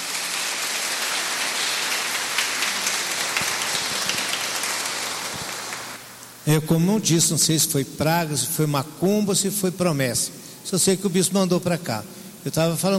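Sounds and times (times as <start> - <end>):
crowd applause: 0.0 - 6.0
speech: 6.5 - 12.9.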